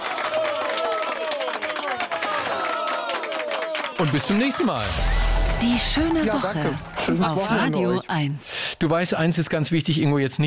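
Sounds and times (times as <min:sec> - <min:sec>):
crowd applause: 0:00.0 - 0:07.7
speech: 0:04.0 - 0:10.4.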